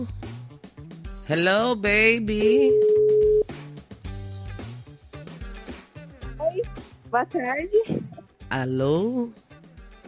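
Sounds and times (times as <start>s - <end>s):
speech: 0.0s - 0.3s, 1.3s - 3.2s, 6.6s - 9.4s
outgoing phone call ringing tone: 2.4s - 3.4s.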